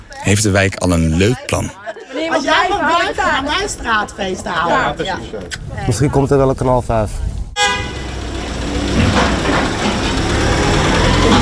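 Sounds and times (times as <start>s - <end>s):
speech: 0.2s - 7.3s
delivery van horn toot: 7.6s - 9.1s
white delivery van driving away: 7.6s - 11.4s.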